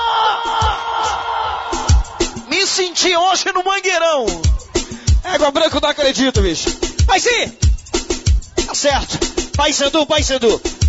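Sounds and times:
crowd of Paysandu fans shouting together: 0:00.0 - 0:04.9
speech: 0:03.0 - 0:04.4, 0:05.3 - 0:07.7, 0:08.8 - 0:10.8.

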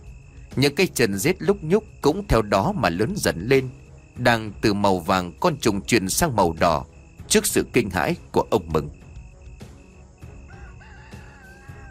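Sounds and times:
speech: 0:00.6 - 0:09.0
caged rooster crowing outside the door of a woodshed: 0:10.4 - 0:11.8.

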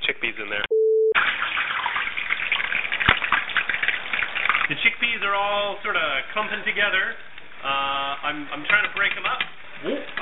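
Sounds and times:
speech: 0:00.2 - 0:00.7, 0:04.7 - 0:10.1
oil crackling and popping in deep fryer: 0:01.2 - 0:05.1.

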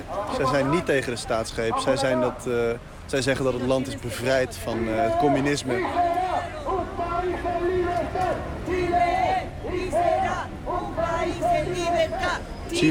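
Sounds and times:
dense murmur of babble: 0:00.0 - 0:12.9
speech: 0:00.4 - 0:06.6, 0:11.7 - 0:12.9
rally crowd chanting slogans: 0:04.8 - 0:12.9.

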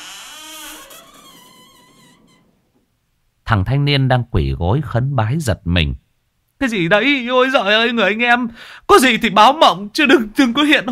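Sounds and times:
old wooden door hinges creaking: 0:00.0 - 0:03.0
speech: 0:03.5 - 0:06.0, 0:06.6 - 0:10.9.

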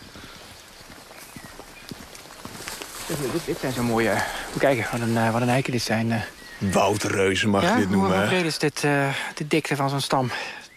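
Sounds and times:
several people's footsteps crunching on a small forest path with twigs and leaves: 0:00.0 - 0:06.7
faint outdoor hiss: 0:00.0 - 0:10.7
speech: 0:03.1 - 0:10.6.

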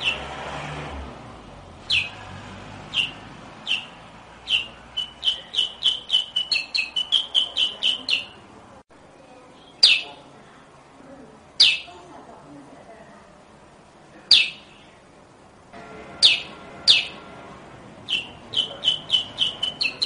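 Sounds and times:
sooty-headed bulbul chirping rapidly: 0:00.0 - 0:00.2, 0:01.8 - 0:02.2, 0:02.9 - 0:08.5, 0:09.7 - 0:10.2, 0:11.6 - 0:12.0, 0:14.3 - 0:15.0, 0:16.2 - 0:17.2, 0:18.0 - 0:20.0.

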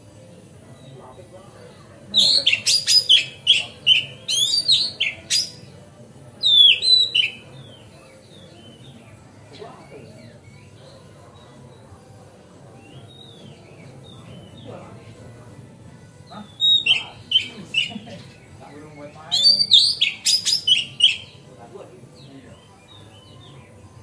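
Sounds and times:
magpie-robin masteran song tutor bird singing on a terrace: 0:02.1 - 0:05.7, 0:06.4 - 0:11.8, 0:12.7 - 0:15.0, 0:16.3 - 0:21.5, 0:22.1 - 0:24.0.

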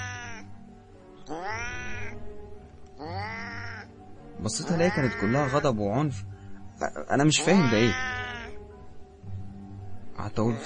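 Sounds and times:
cat meowing: 0:00.0 - 0:00.5, 0:01.3 - 0:02.2, 0:03.0 - 0:03.9, 0:04.6 - 0:05.7, 0:07.4 - 0:08.6
speech: 0:04.4 - 0:08.2, 0:10.3 - 0:10.6.

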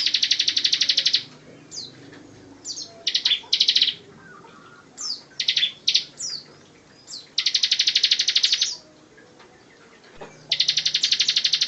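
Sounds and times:
bar-winged prinia song: 0:00.0 - 0:11.6.

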